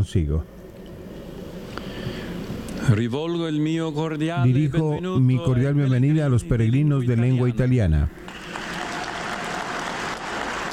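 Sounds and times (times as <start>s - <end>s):
speech: 0.0s - 0.6s, 2.9s - 8.2s
pilgrims clapping for the Pope at an audience: 8.3s - 10.7s.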